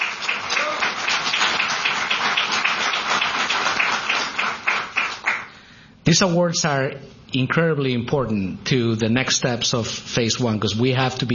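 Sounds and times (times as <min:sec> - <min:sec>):
applause: 0:00.0 - 0:05.5
speech: 0:06.1 - 0:11.3.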